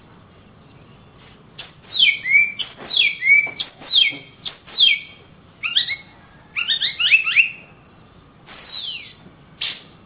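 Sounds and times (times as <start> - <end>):
oriental magpie-robin whistling: 1.6 - 7.7, 8.7 - 9.8.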